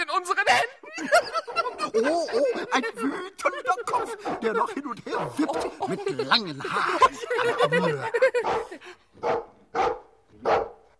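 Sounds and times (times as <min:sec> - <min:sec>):
laughter: 0:00.5 - 0:09.1
speech: 0:02.0 - 0:03.3, 0:04.1 - 0:08.6
dog barking: 0:04.0 - 0:04.5, 0:05.1 - 0:05.8, 0:08.4 - 0:10.9.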